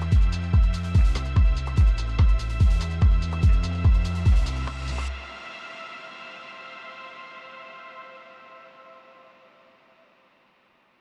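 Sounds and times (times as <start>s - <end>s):
intense cardio workout soundscape: 0.0s - 5.3s.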